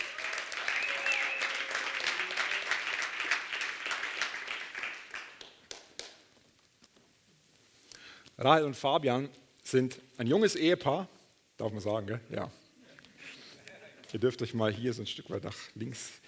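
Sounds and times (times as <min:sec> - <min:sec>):
applause: 0:00.0 - 0:06.2
speech: 0:08.4 - 0:12.6, 0:14.1 - 0:16.2.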